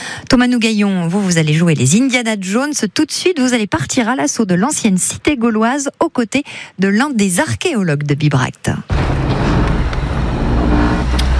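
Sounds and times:
speech: 0.3 - 9.3
engine and road rumble inside a moving service car at Bibracte: 8.9 - 11.3.

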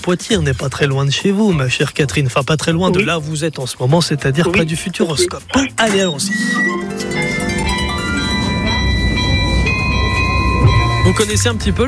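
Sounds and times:
speech: 0.0 - 7.1, 11.1 - 11.8
carillon of the rue des Cordeliers ringing: 4.5 - 11.6.

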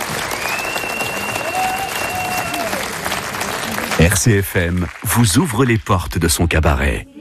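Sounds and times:
audience applauding loudly: 0.0 - 6.0
whistle-like tone: 0.2 - 2.4
speech: 4.0 - 7.1.

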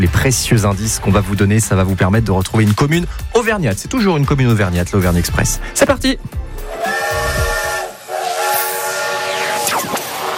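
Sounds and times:
speech: 0.1 - 6.8
steam train whistle: 6.6 - 10.3.

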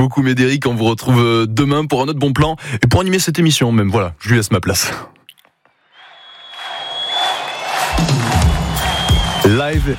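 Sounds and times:
speech: 0.0 - 5.2, 9.5 - 9.9
concert audience roaring during a live show in Austria: 5.9 - 9.9.

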